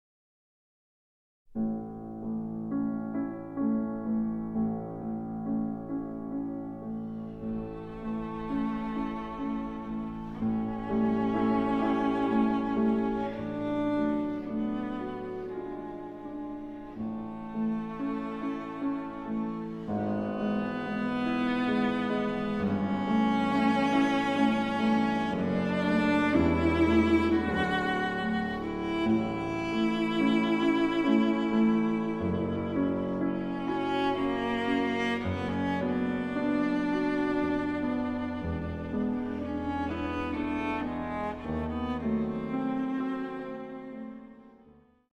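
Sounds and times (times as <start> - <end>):
piano: 1.5 - 45.1
cello adagio: 1.6 - 45.1.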